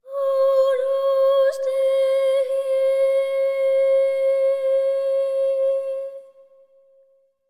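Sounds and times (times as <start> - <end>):
boy singing a phrase: 0.1 - 6.3.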